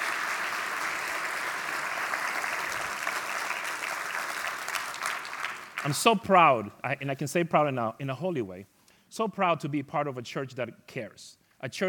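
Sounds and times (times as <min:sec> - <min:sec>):
audience applause: 0:00.0 - 0:06.1
speech: 0:05.8 - 0:11.8.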